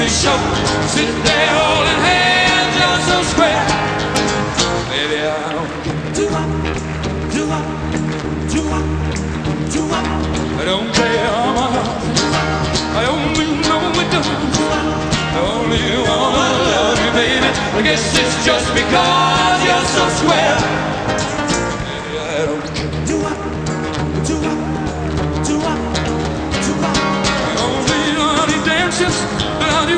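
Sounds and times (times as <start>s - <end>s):
rock music: 0.0s - 29.9s.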